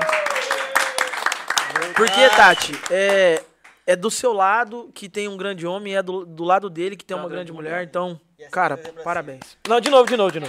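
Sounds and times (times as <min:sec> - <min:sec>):
round of applause: 0:00.0 - 0:03.8, 0:09.6 - 0:10.4
speech: 0:02.0 - 0:10.4.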